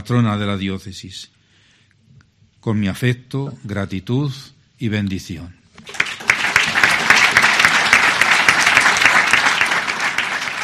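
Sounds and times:
speech: 0.1s - 1.4s, 2.6s - 6.0s
prolonged audience applause: 5.8s - 10.6s.

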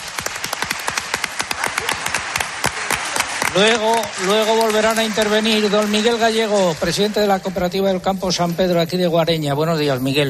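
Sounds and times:
audience applause: 0.0s - 8.0s
speech: 3.6s - 10.2s.

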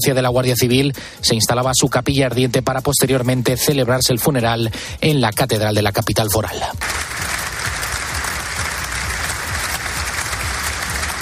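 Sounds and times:
speech: 0.0s - 7.3s
applause from a crowd of Guardia Civil agents: 6.8s - 11.2s.

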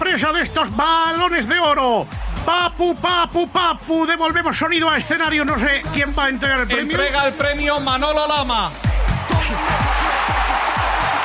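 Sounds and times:
speech: 0.2s - 8.9s
large audience ovation: 9.0s - 11.2s.

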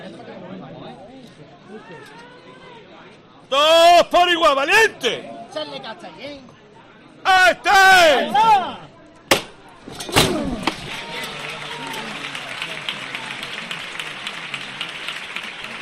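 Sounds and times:
speech: 1.9s - 2.4s, 3.5s - 6.5s, 7.2s - 8.9s
crowd applauding: 10.8s - 15.7s.

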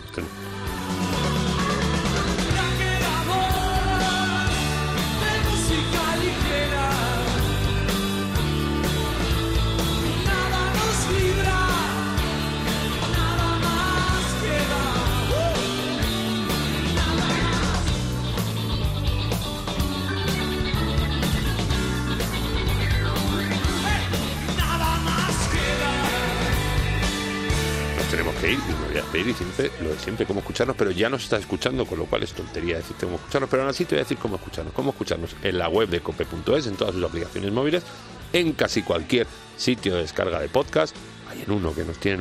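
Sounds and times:
upbeat dance-floor music track with sung vocals and guitar: 0.0s - 42.1s
speech: 29.4s - 42.1s.

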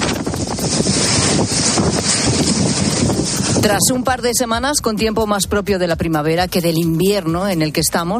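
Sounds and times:
strong wind gusts on the seafront promenade of La Coruña: 0.0s - 5.6s
speech: 3.6s - 8.1s.

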